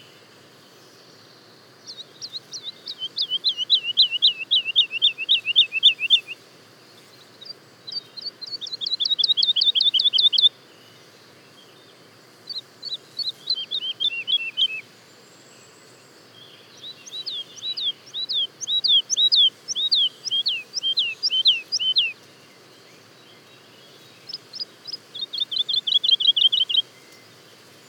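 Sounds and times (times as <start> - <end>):
quiet hiss: 0.0 - 27.8
woodlark singing: 1.9 - 6.4, 7.9 - 10.5, 12.5 - 14.8, 16.7 - 22.2, 24.2 - 26.9.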